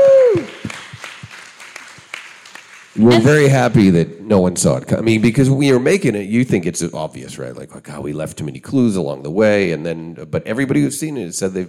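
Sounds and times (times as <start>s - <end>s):
audience applause: 0.0s - 3.8s
speech: 3.0s - 11.6s.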